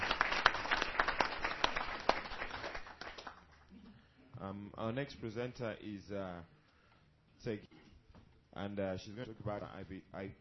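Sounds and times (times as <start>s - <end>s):
applause: 0.0s - 3.7s
speech: 4.5s - 6.6s, 7.4s - 7.8s, 8.6s - 10.3s.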